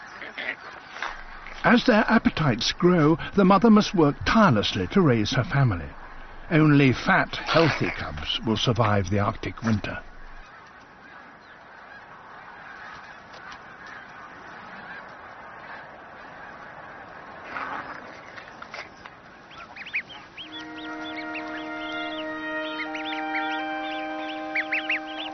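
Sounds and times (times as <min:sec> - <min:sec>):
goslings peeping: 0:00.0 - 0:11.2, 0:19.3 - 0:25.3
geese honking: 0:00.0 - 0:12.0, 0:19.3 - 0:25.3
speech: 0:00.3 - 0:10.1.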